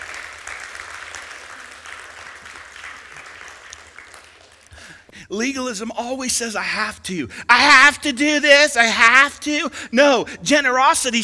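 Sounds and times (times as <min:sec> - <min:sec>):
audience applause: 0:00.0 - 0:05.1
speech: 0:05.2 - 0:11.2.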